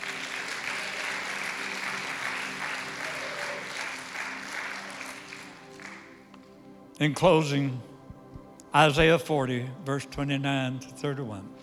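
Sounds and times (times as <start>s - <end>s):
audience hand clapping: 0.0s - 6.5s
speech: 7.0s - 7.9s, 8.7s - 11.6s.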